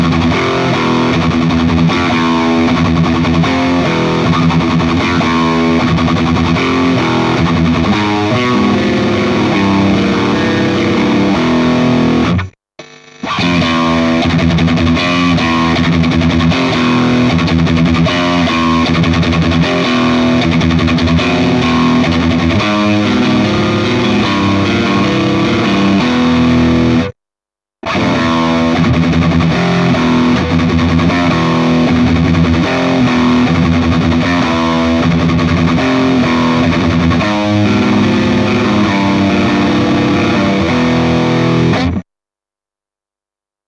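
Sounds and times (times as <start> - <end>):
Solar electric guitar with distortion pickups: 0.0 - 27.2, 27.8 - 42.1.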